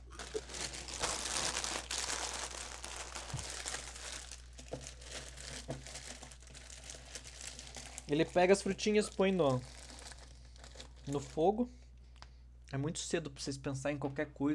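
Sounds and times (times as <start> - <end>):
eating crunchy breakfast cereal: 0.0 - 11.4
speech: 8.1 - 9.8, 11.1 - 11.8, 12.7 - 14.5.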